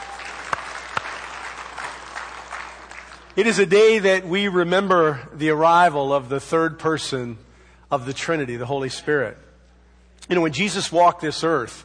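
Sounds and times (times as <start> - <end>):
audience clapping: 0.0 - 3.4
speech: 3.4 - 9.4, 10.2 - 11.8.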